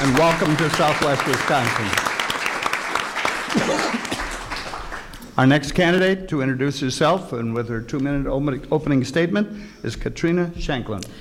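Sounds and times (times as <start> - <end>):
audience applause welcoming a congressional candidate at a Southwest Wisconsin candidate forum: 0.0 - 5.3
speech: 0.1 - 2.1, 5.4 - 11.1.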